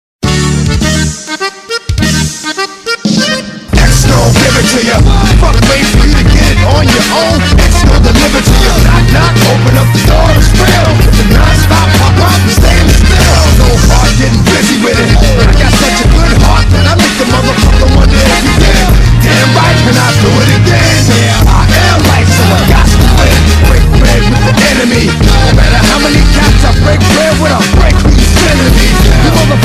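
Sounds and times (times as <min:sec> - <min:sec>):
polka music: 0:00.2 - 0:29.6.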